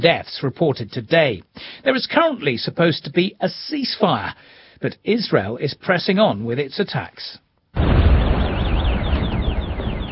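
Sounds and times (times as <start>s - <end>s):
speech: 0.0s - 8.1s
missile strike explosion in Tyre: 7.8s - 10.1s.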